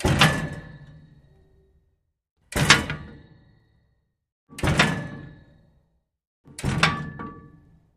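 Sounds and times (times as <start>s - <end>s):
old elevator door: 0.0s - 1.4s, 2.5s - 3.5s, 4.5s - 5.7s, 6.5s - 7.8s.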